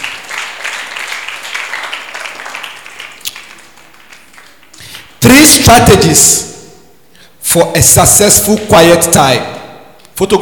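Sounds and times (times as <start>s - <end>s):
crowd applauding: 0.0s - 5.2s
speech: 5.2s - 6.5s, 7.5s - 9.6s, 10.2s - 10.4s.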